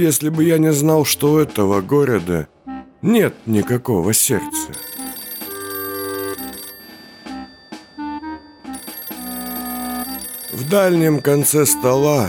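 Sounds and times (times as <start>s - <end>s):
speech: 0.0s - 4.9s, 10.7s - 12.2s
old-fashioned telephone bell ringing: 4.5s - 12.2s.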